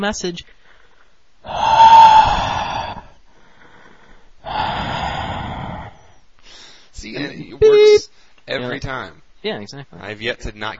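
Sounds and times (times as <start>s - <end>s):
speech: 0.0s - 0.6s, 7.0s - 10.7s
person imitating creepy heavy breathing: 1.4s - 6.6s.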